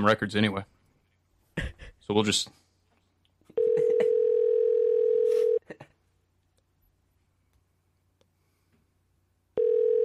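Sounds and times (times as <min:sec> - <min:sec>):
speech: 0:00.0 - 0:00.7, 0:02.1 - 0:02.6
telephone dial tone: 0:03.6 - 0:05.6, 0:09.6 - 0:10.0
telephone dialing clicks and beeps: 0:03.6 - 0:05.6.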